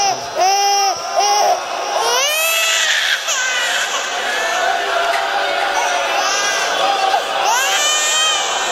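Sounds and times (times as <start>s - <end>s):
infant crying: 0.0s - 5.0s, 5.6s - 8.7s.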